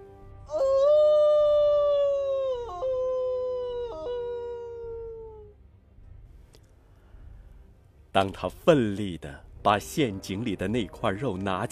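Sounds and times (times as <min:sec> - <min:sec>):
she-wolf letting out a long howl: 0:00.4 - 0:05.5
speech: 0:08.2 - 0:11.7.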